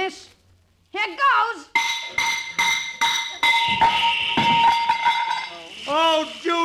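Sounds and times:
sledgehammer striking a water pipe: 1.8 - 5.5
rushing hiss of water from a pipe: 5.3 - 6.6.

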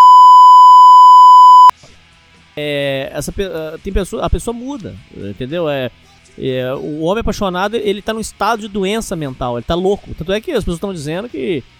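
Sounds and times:
high-pitched censorship bleep: 0.0 - 1.7
speech: 2.6 - 11.7.

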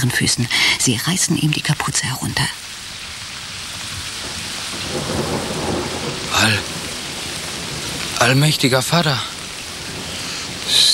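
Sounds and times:
speech: 0.0 - 2.8, 8.2 - 9.4
heavy rain lashing down during a storm: 0.0 - 10.9
rumbling burst of thunder: 3.8 - 10.9.

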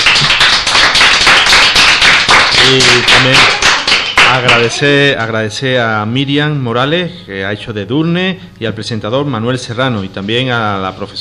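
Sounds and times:
audience applause at a school radio interview: 0.0 - 4.8
speech: 2.7 - 3.6, 4.3 - 11.2.

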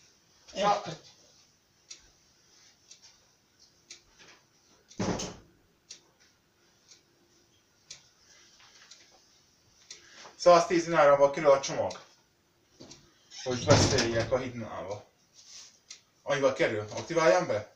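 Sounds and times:
soft clicks and ticking: 0.1 - 5.0, 5.8 - 11.0, 11.6 - 13.2, 14.0 - 16.2, 16.8 - 17.7
speech: 0.6 - 1.1, 10.4 - 12.1, 13.4 - 15.1, 16.3 - 17.7
door shutting with thud: 5.0 - 5.4, 13.4 - 14.4
heavy bang: 13.6 - 14.4.

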